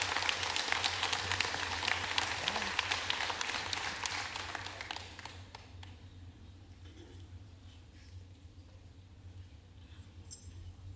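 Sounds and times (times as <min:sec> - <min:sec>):
audience applause: 0:00.0 - 0:06.0.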